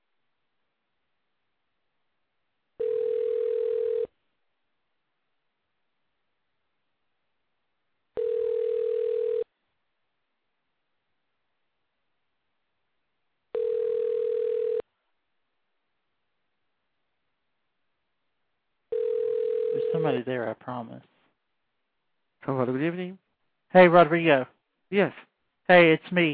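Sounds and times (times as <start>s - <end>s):
telephone line tone: 2.8s - 4.1s, 8.2s - 9.5s, 13.6s - 14.8s, 18.9s - 20.0s
speech: 20.0s - 21.1s, 22.4s - 26.3s.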